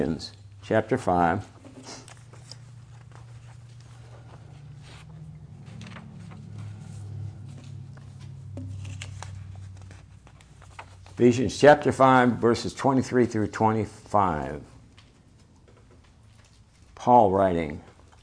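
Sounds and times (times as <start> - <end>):
speech: 0.0 - 2.0, 11.2 - 14.7, 17.0 - 17.9
low steady hum: 0.0 - 18.2
Bible pages turned during a sermon: 1.6 - 11.6.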